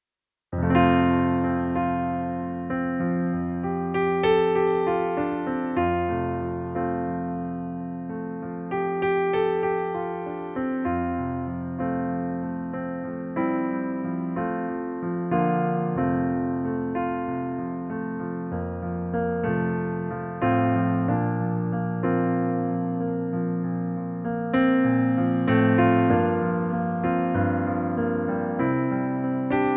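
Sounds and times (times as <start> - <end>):
wedding version piano backing track in F major: 0.5 - 29.7.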